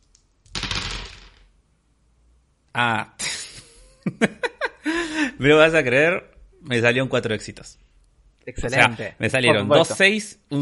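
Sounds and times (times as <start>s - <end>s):
dice being rolled: 0.0s - 1.5s
speech: 2.8s - 3.2s, 4.0s - 4.5s, 5.4s - 7.8s, 8.4s - 10.6s
laughter: 3.2s - 5.1s.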